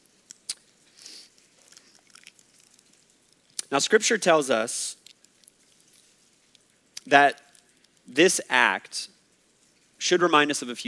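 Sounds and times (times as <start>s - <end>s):
peeling open prepackaged communion wafer cups: 0.1s - 3.7s, 5.0s - 8.1s
speech: 3.7s - 5.0s, 7.1s - 7.4s, 8.1s - 9.2s, 10.0s - 10.8s.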